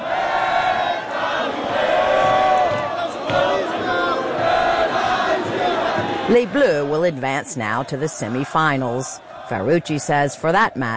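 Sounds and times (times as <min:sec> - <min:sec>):
large crowd singing an anthem: 0:00.0 - 0:10.9
speech: 0:06.3 - 0:10.9.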